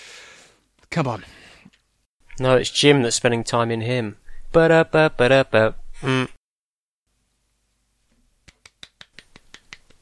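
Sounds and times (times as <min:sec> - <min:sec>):
speech: 0:01.0 - 0:01.4, 0:02.4 - 0:06.4
hands clapping: 0:08.4 - 0:10.0.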